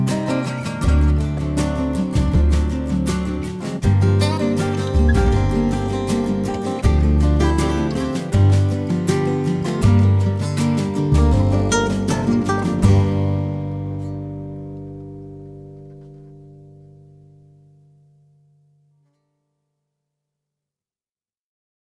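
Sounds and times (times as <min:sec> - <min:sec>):
cafe music atmosphere: 0:00.0 - 0:17.4.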